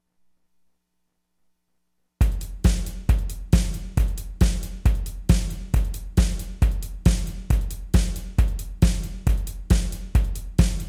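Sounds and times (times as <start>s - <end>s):
drum test: 2.2s - 10.8s.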